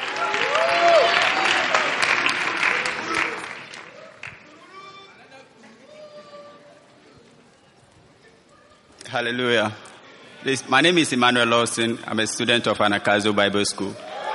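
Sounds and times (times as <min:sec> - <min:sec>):
church congregation applauding to welcome a speaker: 0:00.0 - 0:04.8
speech: 0:09.2 - 0:14.3.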